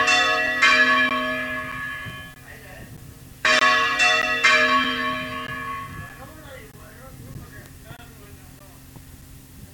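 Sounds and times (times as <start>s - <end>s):
bell: 0.0s - 2.3s, 3.5s - 6.2s.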